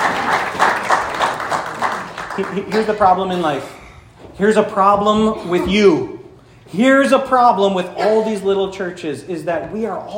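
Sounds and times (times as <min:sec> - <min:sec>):
audience applause: 0:00.0 - 0:03.1
speech: 0:02.4 - 0:10.1.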